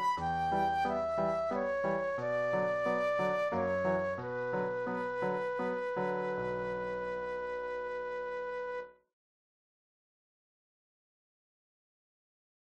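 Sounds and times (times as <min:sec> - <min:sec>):
classical flute solo serenade: 0:00.0 - 0:09.0.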